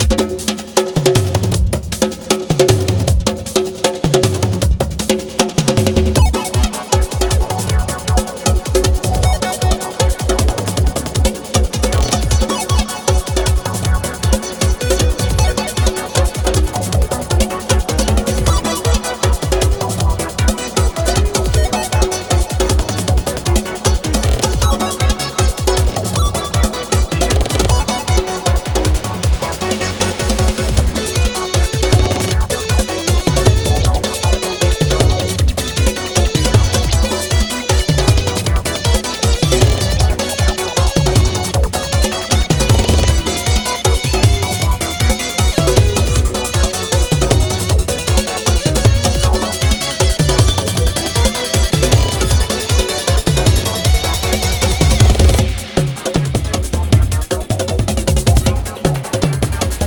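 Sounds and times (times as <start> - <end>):
surf music: 0.0 - 59.8.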